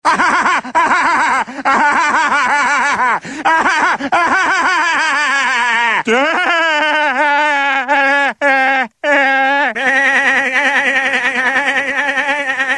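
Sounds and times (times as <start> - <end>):
person laughing: 0.0 - 12.7.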